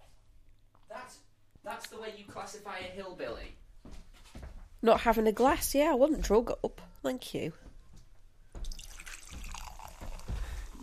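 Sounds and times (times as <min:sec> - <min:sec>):
speech: 0:02.1 - 0:03.6, 0:04.8 - 0:07.6
fizzy soft drink pouring and fizzing: 0:08.6 - 0:10.8.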